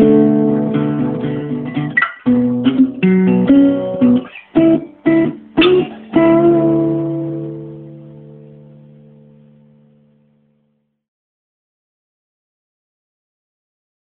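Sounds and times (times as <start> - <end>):
instrumental music: 0.0 - 10.7.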